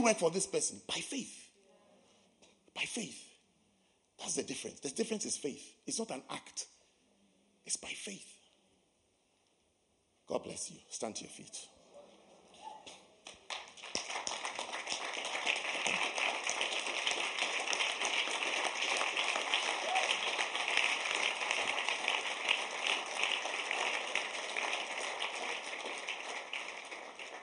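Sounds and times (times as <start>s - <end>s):
speech: 0.0s - 1.4s, 2.8s - 3.3s, 4.2s - 6.7s, 7.6s - 8.3s, 10.3s - 11.7s
weak audience clapping: 13.2s - 27.4s.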